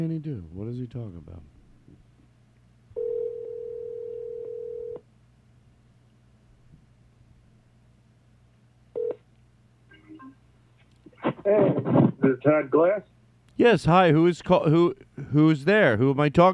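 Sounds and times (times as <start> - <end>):
speech: 0.0 - 2.0, 11.4 - 16.5
phone ring tone: 3.0 - 5.0, 9.0 - 9.2.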